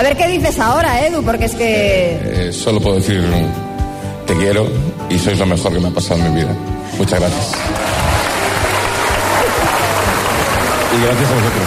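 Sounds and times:
speech: 0:00.0 - 0:03.7, 0:04.3 - 0:08.0, 0:10.9 - 0:11.6
loud audience applause at a live show: 0:07.2 - 0:11.6.

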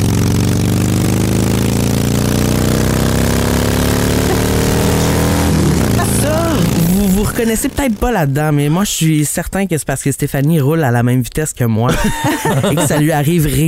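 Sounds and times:
motorcycle passing by: 0:00.0 - 0:08.8
laughter: 0:04.2 - 0:07.7, 0:11.9 - 0:13.6
speech: 0:07.4 - 0:13.6.

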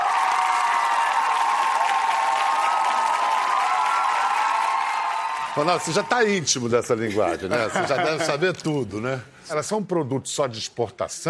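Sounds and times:
audience applause: 0:00.0 - 0:06.8
crowd cheering: 0:00.0 - 0:07.0
speech: 0:05.6 - 0:11.2
laughter: 0:06.9 - 0:08.8.

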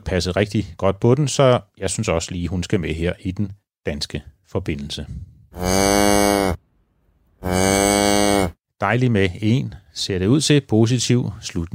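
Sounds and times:
speech: 0:00.1 - 0:06.6, 0:08.8 - 0:11.7
cow and calf mooing: 0:05.6 - 0:06.6, 0:07.4 - 0:08.6.

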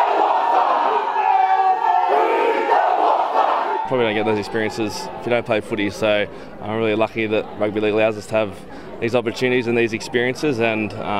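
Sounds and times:
Maori welcome chant for a rugby league team: 0:00.0 - 0:03.9
speech: 0:03.9 - 0:11.1.

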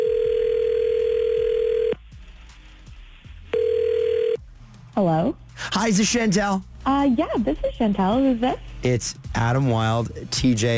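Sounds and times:
outgoing telephone call ringing: 0:00.0 - 0:02.0, 0:03.5 - 0:04.4
speech: 0:05.0 - 0:10.7.

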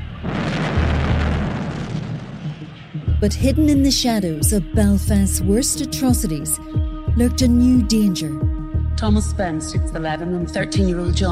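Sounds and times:
massive explosion from a grenade: 0:00.0 - 0:03.0
speech: 0:03.2 - 0:11.3.

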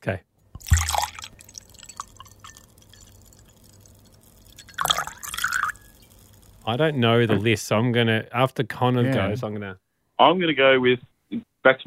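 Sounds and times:
speech: 0:00.0 - 0:00.8, 0:06.6 - 0:11.8
liquid glugging out of a bottle: 0:00.6 - 0:06.6
dripping and sloshing: 0:00.6 - 0:06.7.

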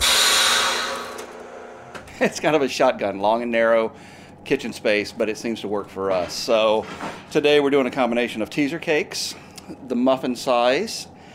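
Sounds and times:
vacuum sealer sealing finished cakes: 0:00.0 - 0:02.1
speech: 0:02.2 - 0:11.1.

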